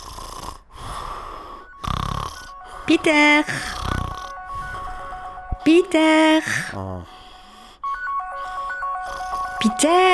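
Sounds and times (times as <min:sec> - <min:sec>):
deeply sleeping person snoring: 0:00.0 - 0:05.0, 0:06.6 - 0:07.7, 0:09.0 - 0:09.6
speech: 0:02.9 - 0:03.8, 0:05.7 - 0:07.2, 0:09.7 - 0:10.1.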